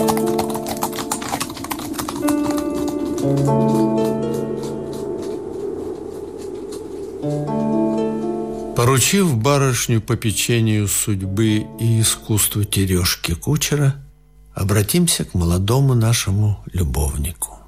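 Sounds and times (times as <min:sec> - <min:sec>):
horses' hoofbeats clattering as they pull a sleigh at speed: 0:00.0 - 0:08.8
speech: 0:03.3 - 0:04.0, 0:08.9 - 0:17.6.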